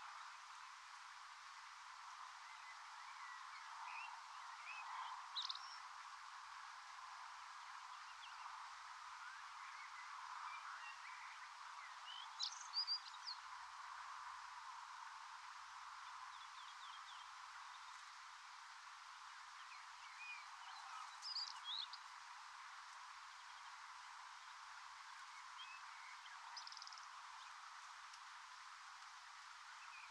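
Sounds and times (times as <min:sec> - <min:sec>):
birds waking in woods at St Didier in France: 0:00.0 - 0:30.1.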